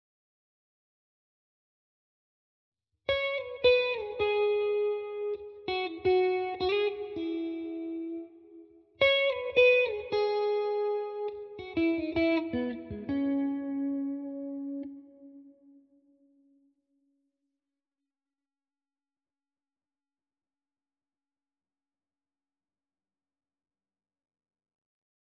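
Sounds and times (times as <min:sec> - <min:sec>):
guitar in E major: 0:03.0 - 0:16.7.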